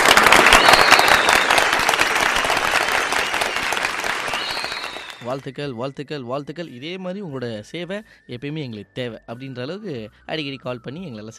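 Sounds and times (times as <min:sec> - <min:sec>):
crowd applause: 0:00.0 - 0:05.4
speech: 0:05.2 - 0:11.3.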